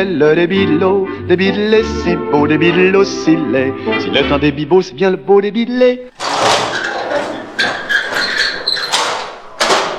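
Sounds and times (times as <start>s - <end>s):
speech: 0.0s - 6.6s
thick hot copper cheese cauldron hauled off the fire, squeaking and clanking: 6.1s - 9.9s.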